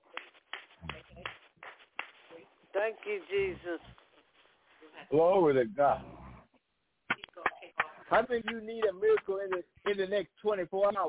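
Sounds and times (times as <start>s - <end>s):
church congregation clapping in praise during a worship service: 0.0s - 2.3s, 7.1s - 10.1s
speech: 2.8s - 4.0s, 5.0s - 6.2s, 8.1s - 11.0s.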